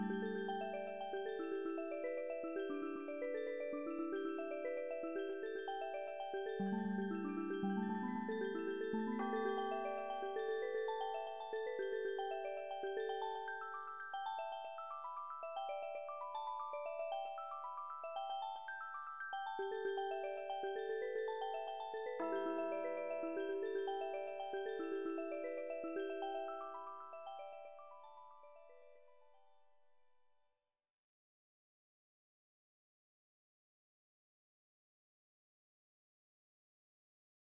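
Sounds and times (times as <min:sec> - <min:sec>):
kalimba: 0:00.0 - 0:29.1.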